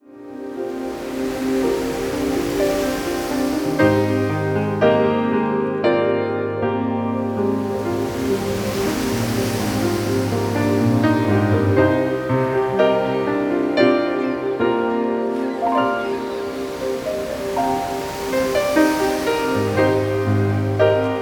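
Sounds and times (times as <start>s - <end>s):
sea: 0.0s - 21.1s.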